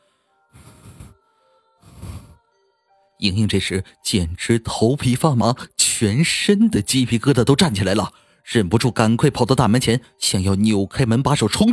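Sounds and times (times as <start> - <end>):
deep breathing: 0.0 - 2.4
speech: 3.2 - 11.7.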